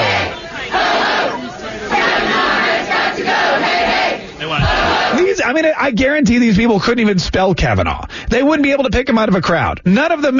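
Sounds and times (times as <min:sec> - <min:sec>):
protest crowd chanting: 0:00.0 - 0:05.4
speech: 0:05.5 - 0:10.3.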